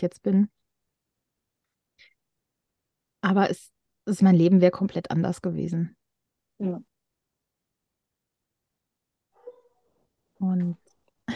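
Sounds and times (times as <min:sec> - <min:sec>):
speech: 0:00.0 - 0:00.6, 0:03.2 - 0:06.0, 0:06.6 - 0:06.9, 0:10.4 - 0:10.8
dog barking: 0:09.4 - 0:09.9
dog whining: 0:09.4 - 0:10.0.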